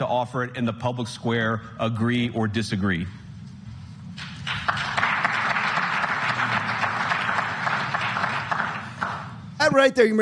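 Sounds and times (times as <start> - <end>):
speech: 0.0 - 3.2, 9.7 - 10.1
audience applause: 4.4 - 9.3.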